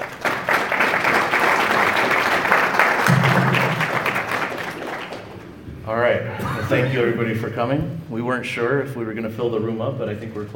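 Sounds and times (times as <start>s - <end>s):
audience applause welcoming two speakers: 0.0s - 5.5s
speech: 6.7s - 10.5s.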